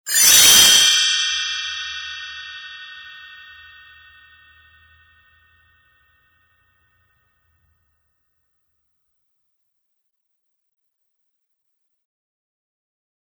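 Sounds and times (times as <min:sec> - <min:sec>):
fanfare: 0:00.1 - 0:02.3.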